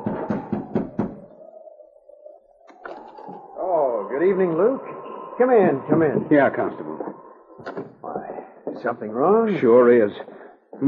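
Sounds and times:
knocking on wooden cabin door: 0.0s - 1.2s
lingering hum: 0.0s - 9.9s
speech: 3.7s - 7.1s, 8.8s - 10.8s.

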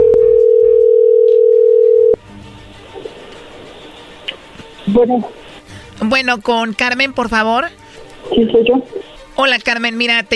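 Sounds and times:
telephone ringing tone: 0.0s - 2.2s
speech: 5.0s - 5.4s, 6.0s - 10.3s.

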